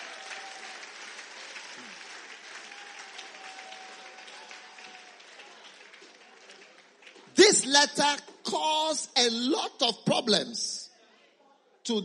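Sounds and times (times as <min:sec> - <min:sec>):
audience clapping: 0:00.0 - 0:08.2
speech: 0:07.6 - 0:10.8, 0:11.9 - 0:12.0.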